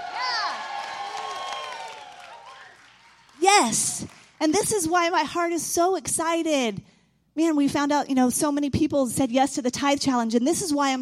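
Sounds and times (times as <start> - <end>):
audience cheering loudly: 0.0 - 4.3
speech: 3.6 - 11.0.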